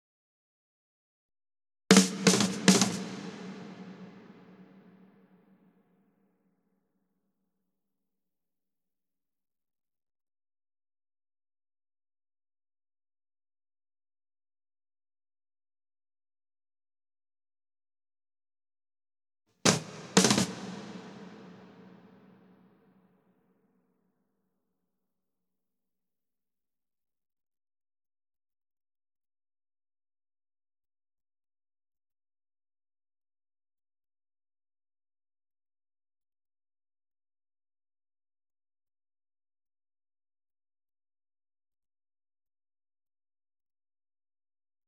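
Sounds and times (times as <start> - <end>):
drums: 1.9 - 5.0, 19.7 - 22.4.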